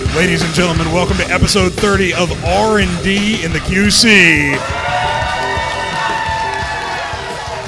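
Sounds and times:
speech: 0.2 - 4.8
live audience cheering and whooping: 4.5 - 7.6.

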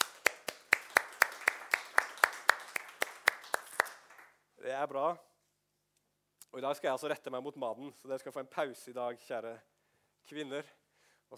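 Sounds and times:
audience applause for mothers: 0.0 - 4.4
speech: 4.7 - 5.3, 6.5 - 9.7, 10.3 - 11.3.

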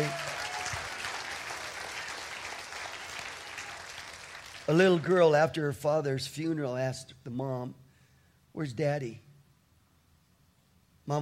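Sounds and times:
audience clapping: 0.0 - 5.4
speech: 4.7 - 7.8, 8.6 - 9.2.

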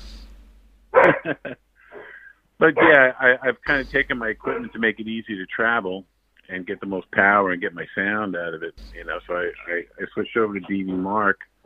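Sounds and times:
dog barking: 1.0 - 2.2, 2.8 - 3.1, 4.4 - 4.8
laughter: 1.0 - 4.9
speech: 1.2 - 1.7, 2.6 - 11.6.

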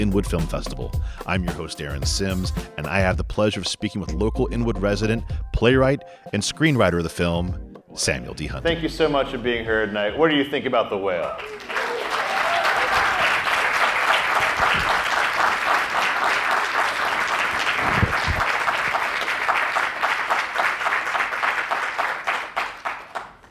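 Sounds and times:
speech: 0.0 - 11.7
audience applause: 11.2 - 23.4.

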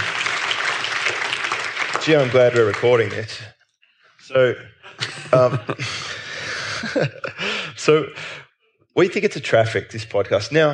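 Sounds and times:
round of applause: 0.0 - 3.5
speech: 2.0 - 3.6, 4.3 - 6.2, 6.8 - 8.4, 9.0 - 10.7
laughter: 4.7 - 8.4.

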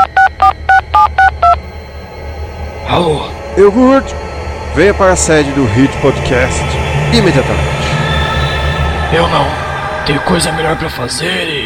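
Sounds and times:
telephone touch-tone dialing beeps: 0.0 - 2.8
speech: 3.0 - 4.2, 4.8 - 7.8, 9.1 - 11.6.

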